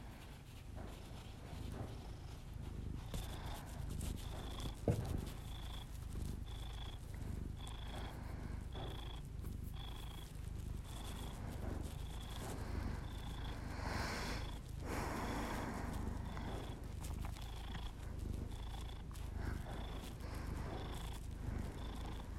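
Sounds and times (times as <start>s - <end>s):
domestic cat purring: 0.0s - 22.3s.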